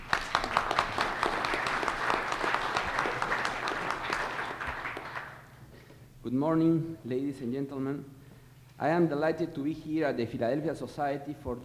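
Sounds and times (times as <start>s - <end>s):
audience applause: 0.0s - 5.5s
speech: 6.3s - 8.2s, 8.8s - 11.6s.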